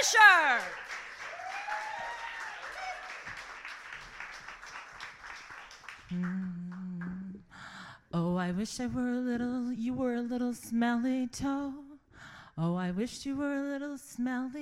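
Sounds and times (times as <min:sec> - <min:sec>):
speech: 0:00.0 - 0:01.0, 0:08.1 - 0:11.8, 0:12.6 - 0:14.6
audience applause: 0:00.0 - 0:06.6.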